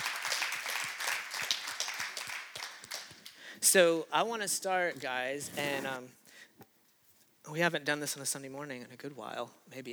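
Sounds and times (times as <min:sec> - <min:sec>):
audience applause: 0:00.0 - 0:03.3
speech: 0:03.6 - 0:06.2, 0:07.5 - 0:09.9.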